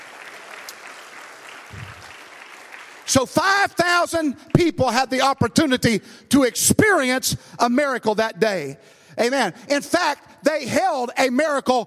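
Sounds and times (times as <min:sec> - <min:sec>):
audience clapping hands: 0:00.0 - 0:04.8
speech: 0:03.1 - 0:11.8.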